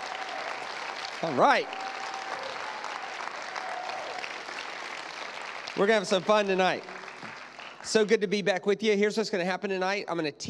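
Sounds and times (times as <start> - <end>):
audience applauding to welcome a pastor onto the stage: 0.0 - 8.2
speech: 1.2 - 1.9, 5.8 - 7.0, 7.8 - 10.4.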